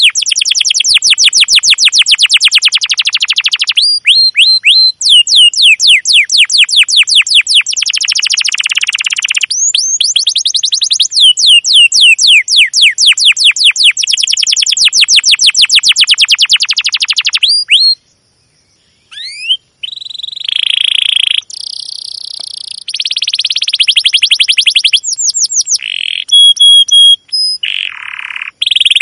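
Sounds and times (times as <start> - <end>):
domestic canary singing chirps, rolling trill and buzzy rattling phrases: 0.0 - 29.0.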